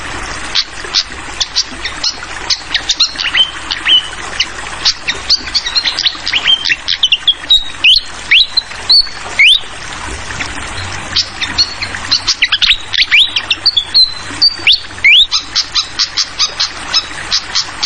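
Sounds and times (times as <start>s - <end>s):
steady trickling-water hiss: 0.0s - 17.8s
fantail bright high whistles and slurred notes: 4.8s - 9.7s, 11.2s - 17.8s.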